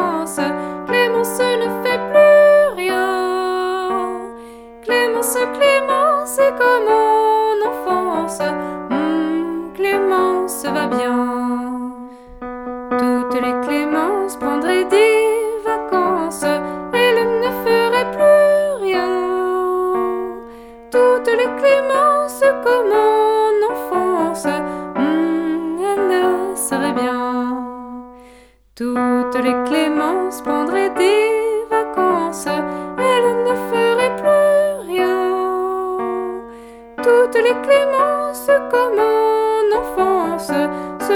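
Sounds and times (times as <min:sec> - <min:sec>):
soprano voice: 0:00.0 - 0:41.1.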